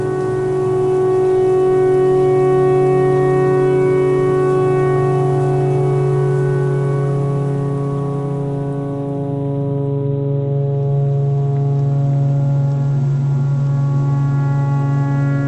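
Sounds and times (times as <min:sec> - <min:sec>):
pentatonic tornado siren: 0:00.0 - 0:15.4.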